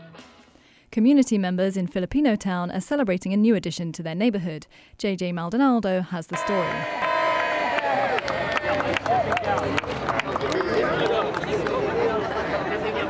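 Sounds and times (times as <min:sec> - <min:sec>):
speech: 0:01.0 - 0:07.0
crowd cheering and applauding at ribbon cutting ceremony: 0:06.4 - 0:12.4.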